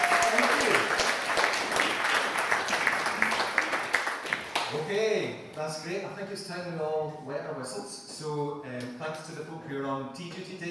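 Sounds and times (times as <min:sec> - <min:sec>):
audience applause: 0:00.0 - 0:04.9
speech: 0:05.6 - 0:10.6.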